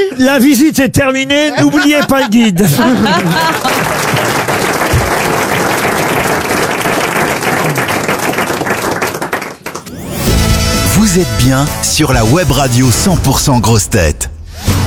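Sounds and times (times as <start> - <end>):
speech: 0.0 - 4.3, 11.0 - 14.3
laughter: 1.4 - 4.9
audience applause: 3.0 - 10.0.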